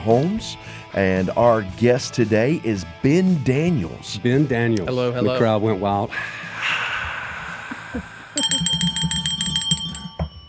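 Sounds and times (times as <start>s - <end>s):
speech: 0.0s - 6.8s, 7.9s - 8.6s
bell ringing sound effect: 8.4s - 10.4s.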